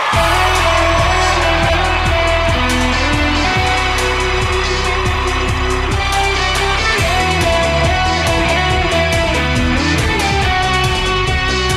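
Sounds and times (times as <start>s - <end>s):
guitar cover: 0.1s - 11.7s.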